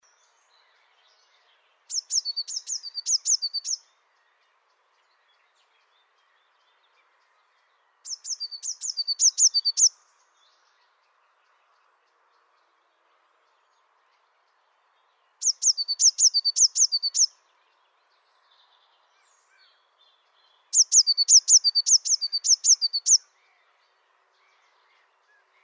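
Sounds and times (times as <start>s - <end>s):
Eurasian blue tit song: 0.0s - 25.6s.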